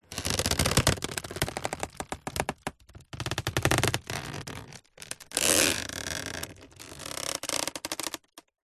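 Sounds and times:
household wicker basket creaking with movement: 0.0 - 8.5.

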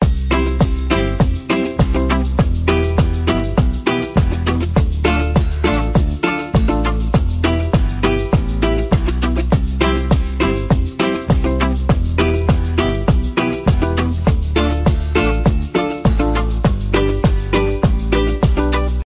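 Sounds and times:
happy music: 0.0 - 19.0.

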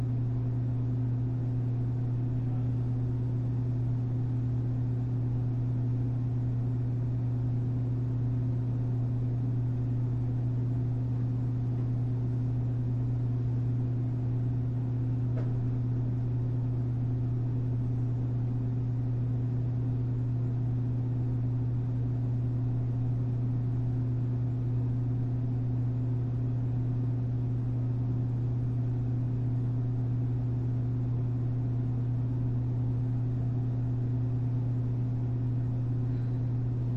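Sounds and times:
quiet vending machine hum in a school hallway: 0.0 - 36.9.

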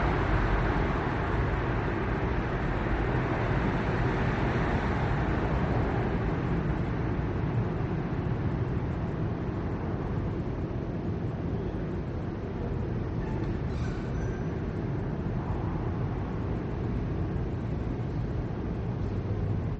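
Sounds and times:
passing cars on wet Prague street late at night: 0.0 - 10.0
rare pedestrians on Prague street: 0.0 - 19.7.

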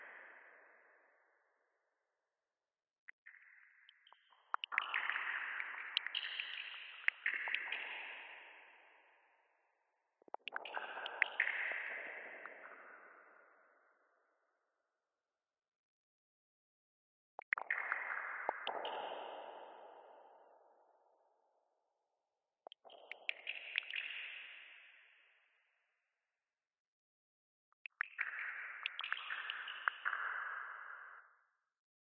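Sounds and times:
sparse water drops dripping with echo in sewers: 3.2 - 9.0, 10.2 - 13.6, 17.4 - 20.8, 22.7 - 24.8, 27.9 - 31.4.

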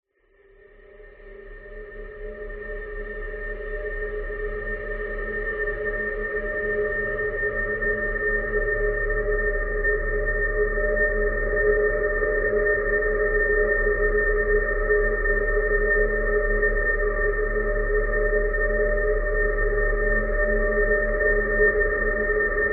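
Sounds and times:
dark eerie desolate sinister howling whine: 0.6 - 22.7.

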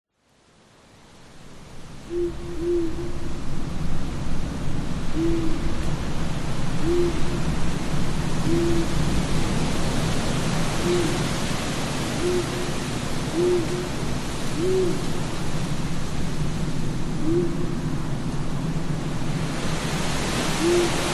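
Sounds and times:
roaring wind: 1.6 - 21.1
owl hooting: 2.1 - 3.3, 5.1 - 5.7, 6.8 - 7.4, 8.5 - 9.0, 10.8 - 11.4, 12.1 - 15.3, 17.2 - 17.8, 20.6 - 21.1
speech: 2.1 - 3.4.

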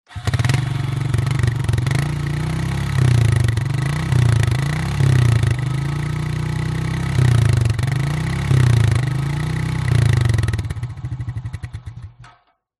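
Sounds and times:
ATV quad bike engine starting and revving from exhaust: 0.1 - 12.3.

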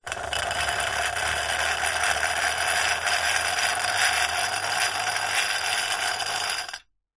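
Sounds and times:
household electric milk frother running dry: 0.0 - 6.8.

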